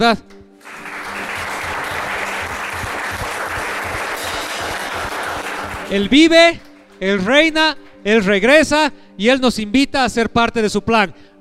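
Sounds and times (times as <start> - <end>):
speech: 0.0 - 0.4, 5.9 - 11.3
loud audience applause: 0.6 - 7.4.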